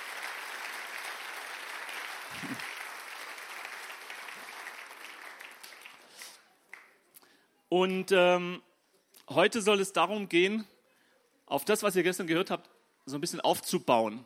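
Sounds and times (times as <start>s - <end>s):
audience applause: 0.0s - 6.9s
speech: 2.4s - 2.7s, 7.7s - 8.7s, 9.3s - 10.7s, 11.5s - 14.2s.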